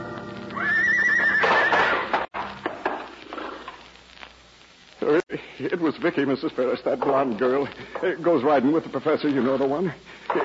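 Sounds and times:
horse neighing: 0.5s - 2.1s
speech: 5.8s - 10.4s.

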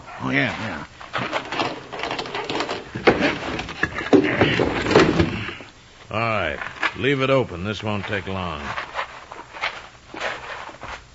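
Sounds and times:
speech: 0.2s - 1.0s, 6.1s - 8.9s
sliding door being unlocked and slid open: 1.1s - 5.5s.

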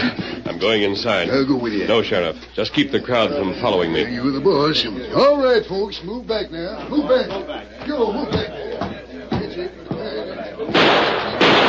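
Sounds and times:
speech: 0.1s - 8.6s
gunshot fired through a window: 10.7s - 11.6s.

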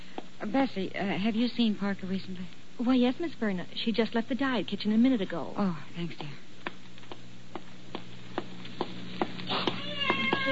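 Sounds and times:
speech: 0.4s - 6.4s
cat meowing: 9.6s - 10.5s.

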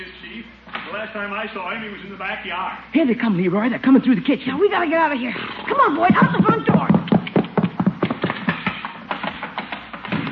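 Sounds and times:
speech: 0.4s - 7.1s
horse hooves clopping through a house: 5.7s - 10.3s.

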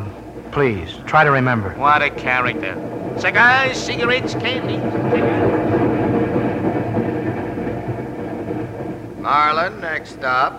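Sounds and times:
moving train wheels clacking on rails: 0.0s - 10.5s
speech: 0.5s - 5.5s, 9.2s - 10.5s.

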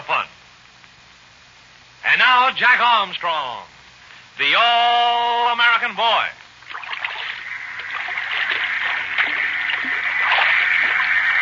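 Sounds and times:
speech: 2.2s - 3.8s, 4.4s - 6.4s
small splashes: 6.6s - 11.4s
waves lapping around an anchored schooner: 6.7s - 11.4s.

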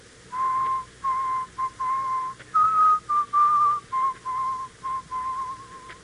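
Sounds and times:
person whistling a slow mournful funeral march: 0.3s - 6.0s.

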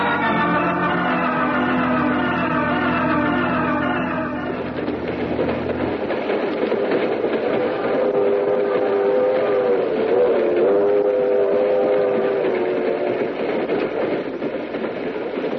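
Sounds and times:
sustained train steam whistle droning: 0.0s - 4.8s, 7.6s - 13.3s
train rumbling: 0.0s - 15.5s.

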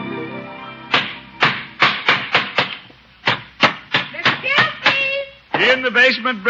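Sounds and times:
hammering: 0.9s - 5.7s.

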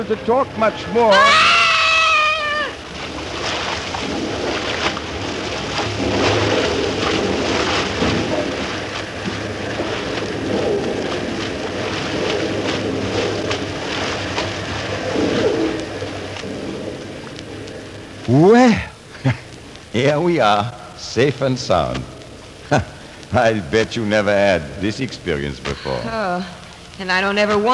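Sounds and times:
speech: 0.0s - 1.6s, 18.3s - 19.4s, 20.0s - 27.7s
roar of a waterfall: 0.9s - 27.7s
high tonal call: 1.0s - 2.9s.

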